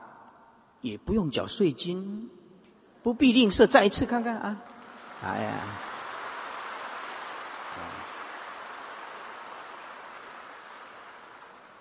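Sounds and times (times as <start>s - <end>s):
speech: 0.8s - 2.4s, 3.0s - 5.9s
audience applause: 4.6s - 11.7s.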